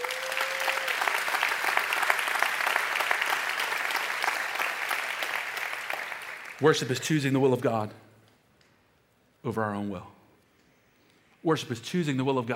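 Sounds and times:
audience applauding: 0:00.0 - 0:06.8
speech: 0:06.6 - 0:08.1, 0:09.4 - 0:10.2, 0:11.4 - 0:12.5.

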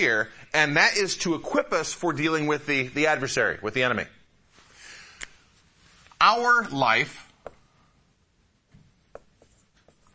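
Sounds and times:
speech: 0:00.0 - 0:04.2, 0:06.2 - 0:07.2
pen scratching while writing backwards: 0:09.2 - 0:10.1.

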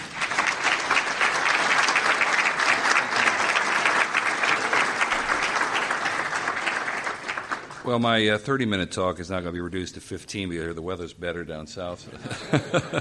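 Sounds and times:
audience applause welcoming a speaker at a Christian fellowship gathering: 0:00.0 - 0:08.0
laughter: 0:02.6 - 0:05.5, 0:12.1 - 0:12.9
speech: 0:07.9 - 0:12.9.

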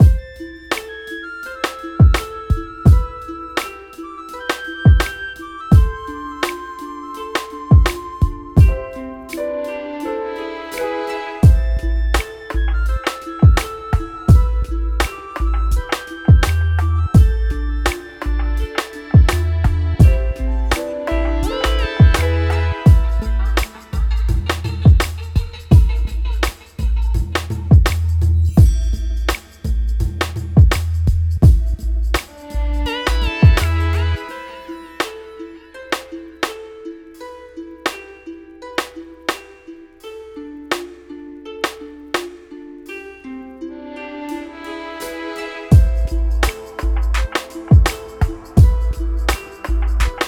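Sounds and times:
Afrobeat music: 0:00.0 - 0:50.2.

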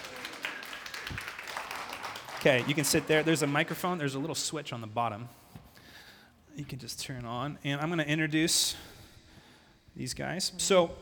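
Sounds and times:
audience applause: 0:00.0 - 0:04.3
speech: 0:02.4 - 0:05.4, 0:06.6 - 0:09.0, 0:10.0 - 0:11.0.

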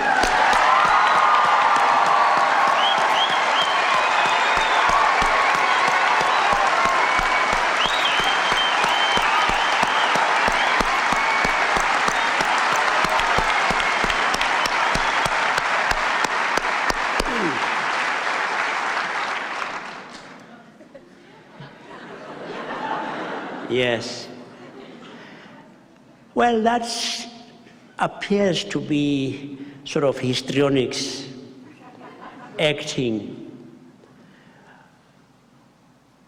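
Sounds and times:
audience applause: 0:00.0 - 0:20.5
laughter: 0:20.4 - 0:25.8, 0:31.7 - 0:32.7
speech: 0:26.5 - 0:27.2, 0:28.0 - 0:31.3, 0:32.6 - 0:33.4.

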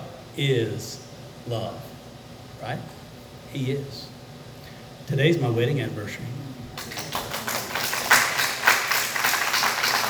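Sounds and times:
speech: 0:00.4 - 0:01.9, 0:02.6 - 0:04.1, 0:05.1 - 0:06.5
audience clapping: 0:06.8 - 0:10.0.

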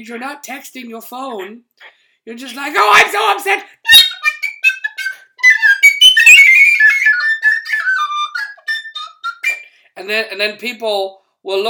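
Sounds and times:
speech: 0:00.0 - 0:04.0, 0:10.0 - 0:11.6
penny whistle playing: 0:03.8 - 0:09.7.

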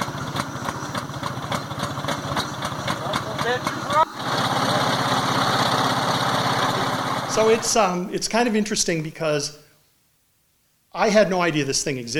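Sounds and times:
old truck engine idling: 0:00.0 - 0:07.8
speech: 0:03.5 - 0:04.0, 0:07.4 - 0:09.6, 0:10.9 - 0:12.1.

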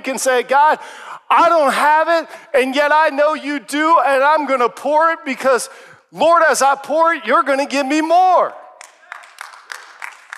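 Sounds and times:
speech: 0:00.0 - 0:08.6
small audience clapping: 0:08.8 - 0:10.3.

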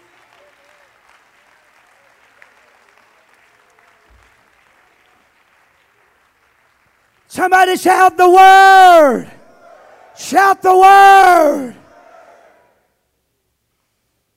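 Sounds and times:
audience clapping: 0:00.0 - 0:08.4
speech: 0:07.3 - 0:09.3, 0:10.2 - 0:11.8.

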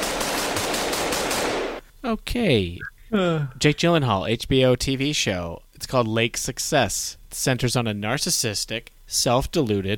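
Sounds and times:
rapid machine gun fire: 0:00.0 - 0:01.8
speech: 0:02.1 - 0:09.9.

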